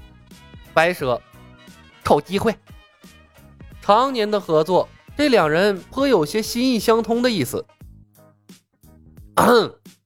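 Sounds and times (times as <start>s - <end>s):
speech: 0.8s - 1.3s, 2.1s - 2.7s, 3.9s - 7.8s, 9.4s - 9.8s
person coughing: 9.4s - 9.8s.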